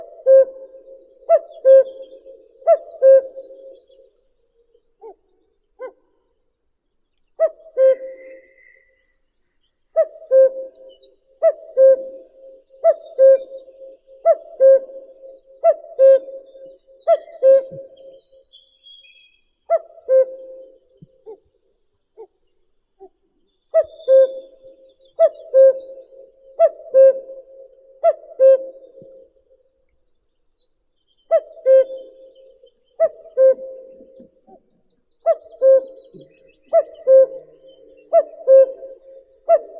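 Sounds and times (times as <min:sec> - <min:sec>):
common cuckoo Cuculus canorus calling: 0:00.0 - 0:04.1, 0:07.4 - 0:09.0, 0:09.9 - 0:21.5, 0:23.7 - 0:29.2, 0:31.2 - 0:39.7.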